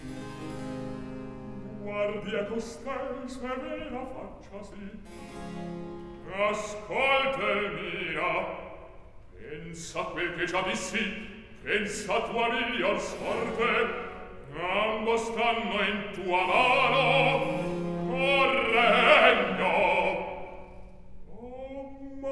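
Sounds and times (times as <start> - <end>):
recitative singing: 1.1 - 22.3.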